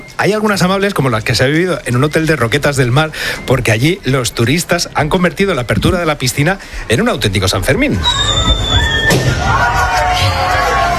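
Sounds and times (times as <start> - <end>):
speech: 0.2 - 10.3
crowd noise with shouts and squeals: 7.8 - 10.9
high whistle tone: 8.0 - 10.8.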